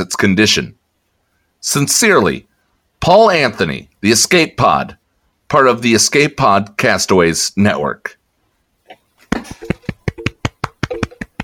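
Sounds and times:
speech: 0.2s - 0.8s, 1.6s - 8.2s, 9.3s - 10.3s
single pair of hands clapping: 9.3s - 11.4s.

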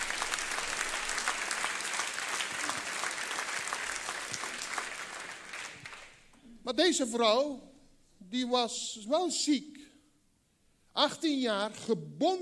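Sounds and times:
audience applause: 0.0s - 6.3s
speech: 6.6s - 7.7s, 8.3s - 9.8s, 11.0s - 12.3s.

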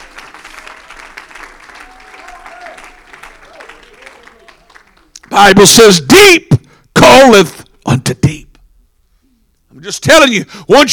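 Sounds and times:
large crowd clapping: 0.0s - 5.7s
speech: 5.4s - 8.5s, 9.8s - 10.9s.

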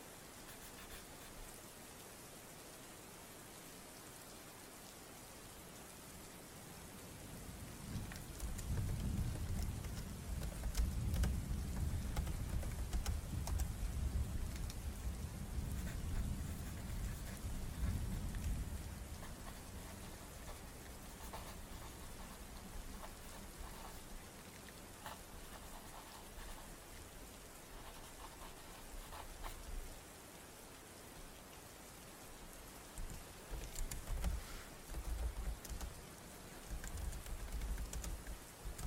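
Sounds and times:
steady rain: 0.0s - 38.8s.

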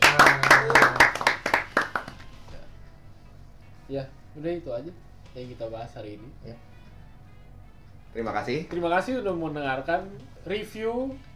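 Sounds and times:
hand clapping: 0.0s - 2.5s
speech: 3.9s - 6.7s, 8.1s - 11.3s.

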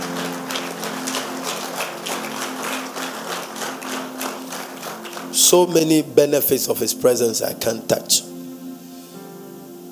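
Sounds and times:
audience clapping: 0.0s - 6.8s
speech: 5.5s - 8.4s.

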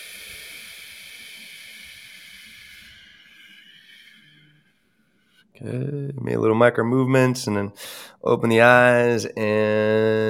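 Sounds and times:
slow breath out: 0.0s - 5.5s, 7.8s - 8.2s
speech: 5.6s - 10.2s.

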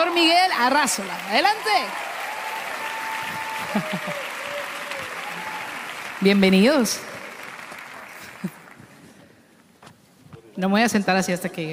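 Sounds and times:
audience applause: 0.0s - 9.1s
speech: 0.1s - 2.1s, 3.7s - 4.2s, 6.2s - 7.1s, 10.6s - 11.7s
laughter: 3.4s - 4.6s.

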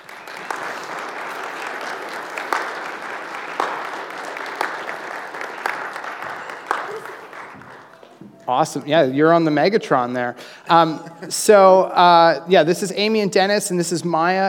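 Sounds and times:
audience applause as a family is called onto a stage: 0.0s - 8.2s
speech: 8.5s - 14.4s.

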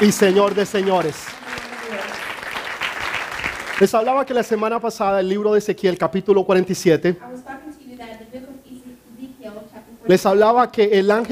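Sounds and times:
speech: 0.0s - 2.2s, 3.8s - 8.6s, 10.1s - 11.3s
audience applauding: 0.0s - 4.7s.

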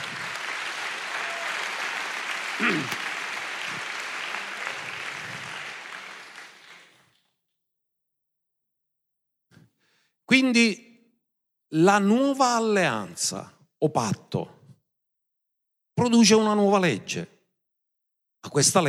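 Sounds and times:
crowd applauding: 0.0s - 7.2s
speech: 2.6s - 3.0s, 10.4s - 10.9s, 11.7s - 14.6s, 16.0s - 17.4s, 18.4s - 18.8s.

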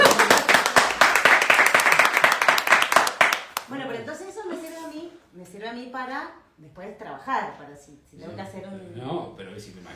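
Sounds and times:
small group applauding: 0.0s - 3.9s
speech: 5.9s - 9.9s.

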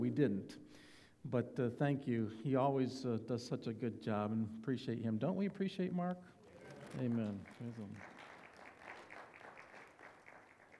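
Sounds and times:
speech: 0.0s - 8.2s
audience applause clapping: 6.4s - 10.7s.

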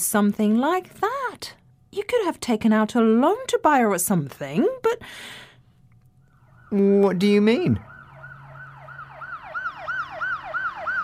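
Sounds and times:
speech: 0.0s - 5.4s, 6.7s - 7.9s
siren sound effect in a rapid yelping pattern: 6.2s - 11.0s.

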